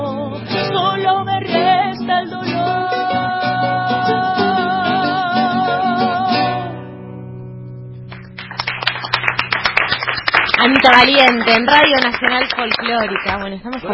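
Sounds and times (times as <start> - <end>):
sung melody with sustained instrumental notes: 0.0 - 8.5
audience applause: 8.1 - 13.9
speech: 10.8 - 13.9.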